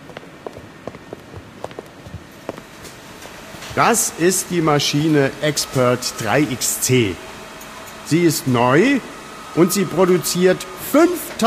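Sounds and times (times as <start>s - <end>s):
footsteps walking into a hall: 0.0s - 3.8s
speech: 3.8s - 7.3s, 8.1s - 11.4s.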